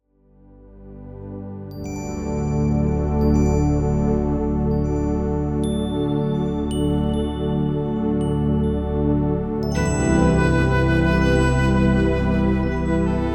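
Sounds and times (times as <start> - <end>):
mystical bells: 1.8 - 13.2.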